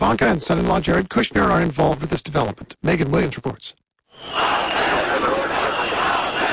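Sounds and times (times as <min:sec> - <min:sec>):
speech: 0:00.0 - 0:05.0
protest crowd in Tirana, Albania, against a luxury resort deal: 0:04.1 - 0:06.5.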